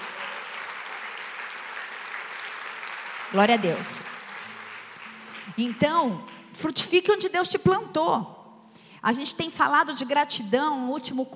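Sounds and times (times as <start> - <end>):
audience applauding: 0.0 - 6.4
speech: 3.3 - 4.1, 5.6 - 8.4, 9.0 - 11.3.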